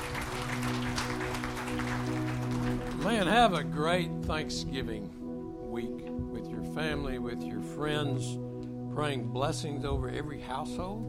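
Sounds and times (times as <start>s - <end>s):
church congregation applause: 0.0s - 3.8s
sustained musical tone: 0.0s - 11.0s
speech: 3.0s - 5.2s, 6.8s - 8.4s, 9.0s - 11.0s.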